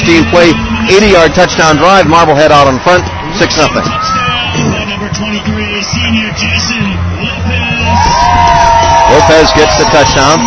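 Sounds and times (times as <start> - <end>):
partisan football crowd cheering at a football game: 0.0 - 10.4
speech: 0.1 - 7.1, 7.9 - 10.4.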